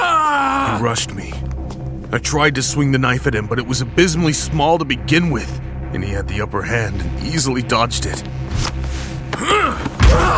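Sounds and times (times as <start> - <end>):
speech: 0.8 - 8.8
person groaning: 9.4 - 10.3.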